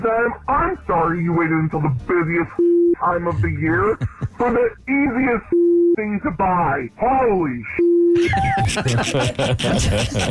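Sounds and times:
speech: 0:00.0 - 0:10.2
censor bleeps: 0:02.6 - 0:03.0, 0:05.5 - 0:06.1, 0:07.7 - 0:08.6
laughter: 0:03.3 - 0:04.8, 0:08.2 - 0:10.2.

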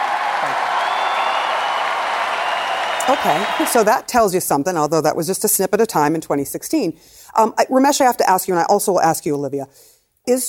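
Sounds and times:
audience cheering and applause: 0:00.0 - 0:04.1
speech: 0:03.1 - 0:10.4.

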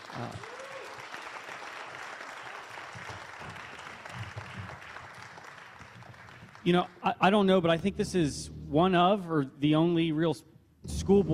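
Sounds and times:
audience clapping: 0:00.0 - 0:08.0
speech: 0:06.6 - 0:11.3.

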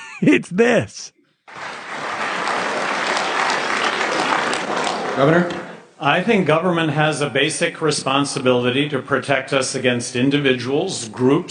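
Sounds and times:
speech: 0:00.2 - 0:01.7, 0:04.7 - 0:11.4
audience applauding wildly: 0:01.5 - 0:05.9.

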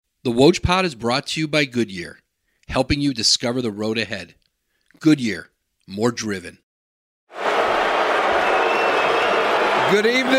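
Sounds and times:
speech: 0:00.2 - 0:04.4, 0:05.0 - 0:06.6, 0:09.9 - 0:10.3
crowd cheering and applauding at the 2013 NBA Draft at the Barclays Center in Brooklyn: 0:07.3 - 0:10.3.

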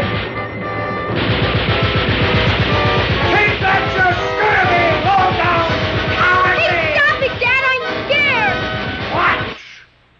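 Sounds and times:
dense noisy din: 0:00.0 - 0:10.0
rapid gunfire from soldiers firing in a battle scene: 0:01.2 - 0:07.7.

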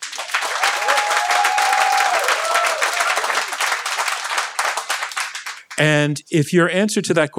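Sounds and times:
crowd applause: 0:00.0 - 0:06.0
whistle or cheer: 0:00.6 - 0:03.4
speech: 0:05.8 - 0:07.3.

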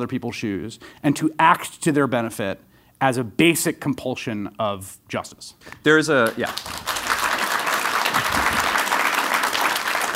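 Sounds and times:
speech: 0:00.0 - 0:06.9
audience applause: 0:06.4 - 0:10.1.

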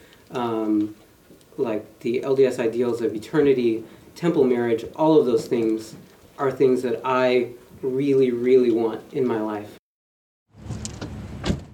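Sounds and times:
speech: 0:00.3 - 0:01.0, 0:01.6 - 0:09.8
car door closing: 0:10.6 - 0:11.7.

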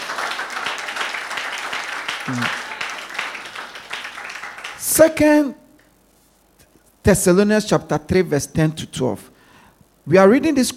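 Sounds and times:
audience clapping: 0:00.0 - 0:05.3
speech: 0:02.3 - 0:02.6, 0:05.0 - 0:05.6, 0:07.1 - 0:09.3, 0:10.1 - 0:10.7.

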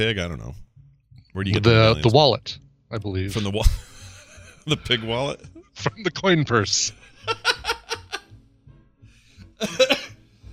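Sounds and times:
speech: 0:00.0 - 0:00.7, 0:01.3 - 0:03.9, 0:04.7 - 0:07.5, 0:09.6 - 0:10.0
breathy rhythmic laughter: 0:03.7 - 0:05.7, 0:07.0 - 0:08.3, 0:09.6 - 0:10.1
loud harsh cough after laughing: 0:09.6 - 0:10.2.

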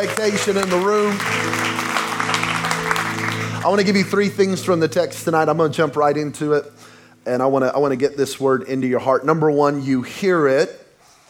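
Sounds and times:
speech: 0:00.0 - 0:01.8, 0:03.6 - 0:10.8
audience clapping: 0:00.0 - 0:04.6.

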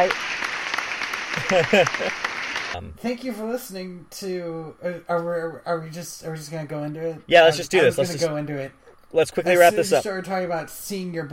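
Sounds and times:
speech: 0:00.0 - 0:00.3, 0:01.3 - 0:11.3
applause added in post-production: 0:00.0 - 0:02.8
laughter: 0:01.4 - 0:02.2, 0:09.6 - 0:10.0.

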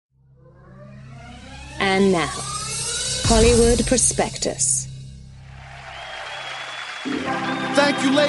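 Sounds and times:
low droning hum: 0:00.2 - 0:05.5
speech: 0:01.9 - 0:02.6, 0:03.3 - 0:04.9, 0:07.8 - 0:08.2
audience applause: 0:05.4 - 0:08.2.

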